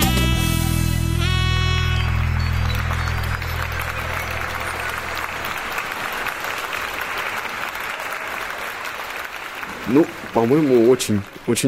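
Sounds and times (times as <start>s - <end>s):
held musical chord: 0.1s - 6.9s
applause: 1.2s - 11.6s
speech: 9.9s - 11.6s.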